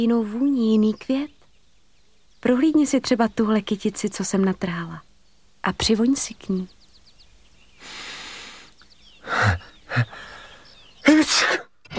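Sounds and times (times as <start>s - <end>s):
speech: 0.0s - 1.4s, 2.4s - 6.8s
powerful sneeze: 11.1s - 11.7s.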